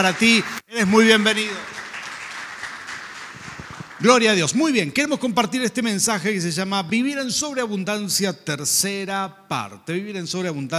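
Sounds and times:
speech: 0.0 - 1.8, 4.0 - 10.7
audience applause in a large room: 0.0 - 4.4.

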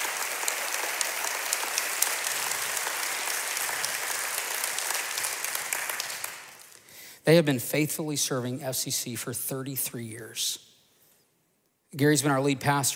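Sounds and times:
audience applause: 0.0 - 6.8
speech: 7.3 - 10.7, 11.9 - 12.9.

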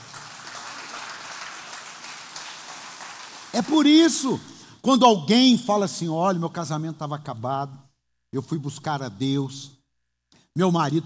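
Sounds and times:
audience applause: 0.0 - 3.9
speech: 3.6 - 9.8, 10.6 - 11.0.

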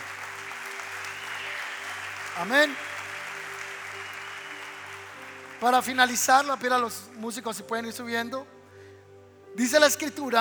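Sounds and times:
audience applauding: 0.0 - 7.3
speech: 2.4 - 2.9, 5.6 - 8.6, 9.6 - 10.4.

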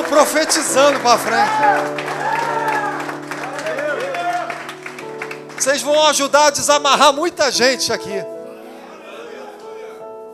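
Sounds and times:
audience applauding: 0.0 - 6.4
speech: 0.1 - 2.2, 5.6 - 8.3.

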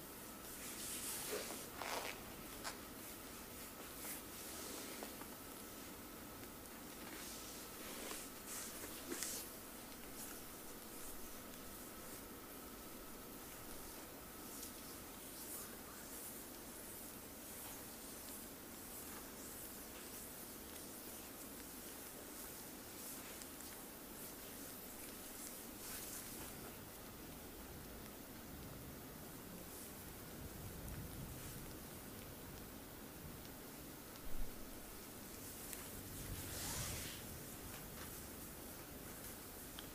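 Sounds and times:
steady soft hiss: 0.0 - 39.9
hands rubbing skin in a full body sport massage: 0.4 - 5.8, 6.4 - 12.6, 13.3 - 27.1, 35.3 - 39.9.

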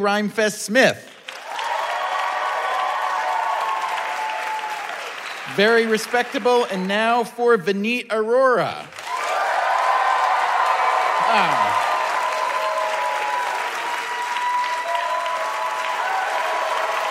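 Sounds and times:
speech: 0.0 - 1.2, 5.5 - 9.0, 11.3 - 11.8
audience clapping for a contestant: 0.9 - 7.4, 8.8 - 17.1
audience whooping: 1.4 - 5.9, 9.0 - 17.1.

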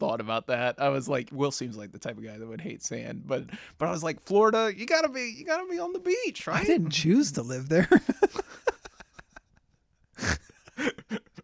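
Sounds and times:
speech: 0.1 - 8.8
breathy laughter: 8.0 - 11.4
person snorting: 10.2 - 11.3.

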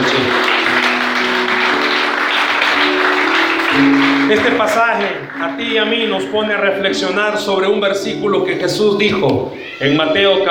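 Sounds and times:
audience applauding: 0.0 - 6.6
low keyboard tones: 0.0 - 10.5
speech: 4.3 - 10.5.

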